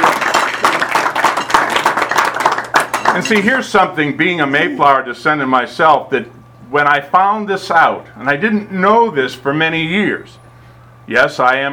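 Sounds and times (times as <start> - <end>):
audience clapping: 0.0 - 3.6
speech: 3.2 - 10.4, 11.1 - 11.7.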